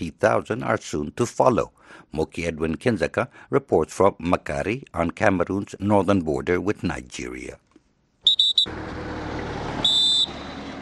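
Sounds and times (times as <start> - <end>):
speech: 0.0 - 7.7, 8.6 - 9.0
troops blowing whistles to signal departure: 8.2 - 8.7, 9.8 - 10.7.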